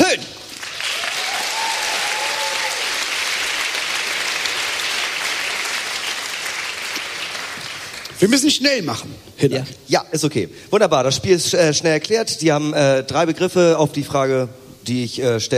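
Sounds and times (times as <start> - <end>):
audience applause: 0.4 - 8.2
speech: 8.2 - 15.5.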